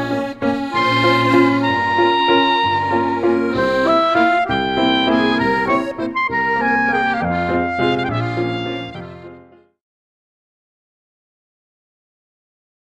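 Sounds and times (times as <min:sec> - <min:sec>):
French musette music: 0:00.0 - 0:09.8.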